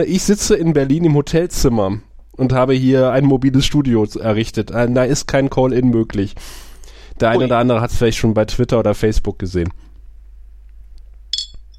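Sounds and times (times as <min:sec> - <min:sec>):
speech: 0:00.0 - 0:09.8
low steady hum: 0:00.0 - 0:11.7
glasses clinking in a toast: 0:11.3 - 0:11.7.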